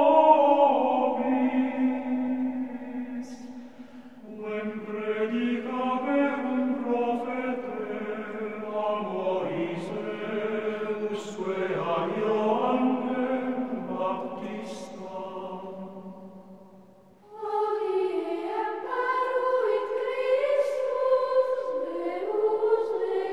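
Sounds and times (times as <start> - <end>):
Ambrosian chant antiphon choir chanting: 0.0 - 23.3.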